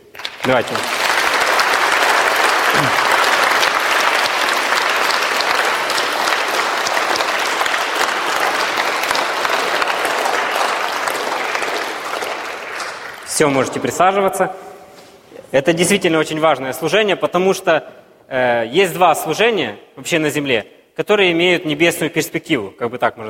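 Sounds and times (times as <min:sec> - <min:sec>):
church audience applause: 0:00.0 - 0:14.4
speech: 0:00.4 - 0:01.0, 0:02.8 - 0:03.1, 0:13.4 - 0:14.6, 0:15.5 - 0:23.2.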